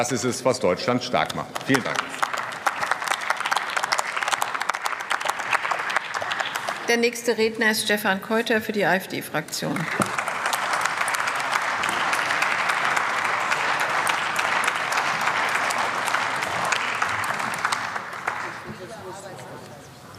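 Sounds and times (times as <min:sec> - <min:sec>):
speech: 0:00.0 - 0:02.3, 0:06.9 - 0:10.1
crowd applause in parliament: 0:01.3 - 0:06.9, 0:09.8 - 0:19.4.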